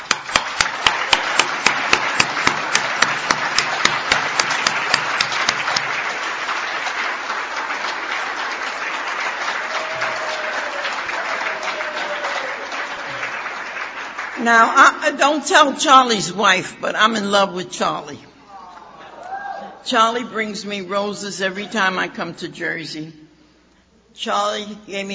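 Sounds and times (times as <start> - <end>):
audience round of applause: 0.0 - 14.4
speech: 14.4 - 18.3, 19.8 - 23.2, 24.1 - 25.1.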